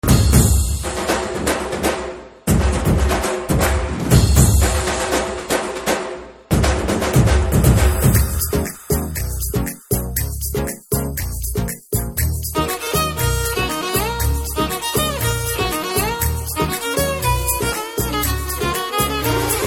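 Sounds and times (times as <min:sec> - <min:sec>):
background drum beats: 0:00.0 - 0:19.6.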